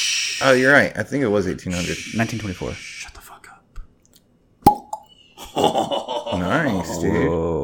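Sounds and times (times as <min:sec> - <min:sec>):
speech: 0:00.4 - 0:03.2, 0:06.8 - 0:07.6
shot glass lid popping off a bottle: 0:04.6 - 0:05.0
laughter: 0:05.4 - 0:07.6.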